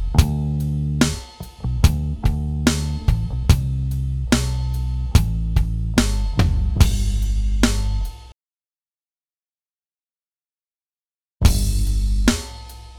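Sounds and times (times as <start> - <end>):
drum and bass music before tube booster: 0.0 - 8.3, 11.5 - 12.9.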